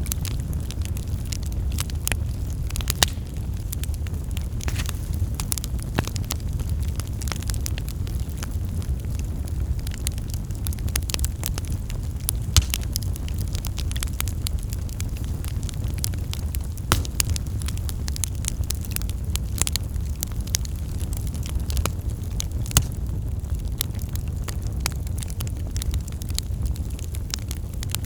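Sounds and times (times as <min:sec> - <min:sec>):
campfire crackling: 0:00.0 - 0:28.0.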